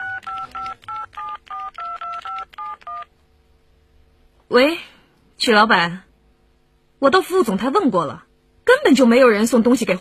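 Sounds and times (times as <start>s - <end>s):
telephone number being dialed: 0.0s - 3.1s
speech: 4.5s - 6.0s, 7.0s - 9.9s.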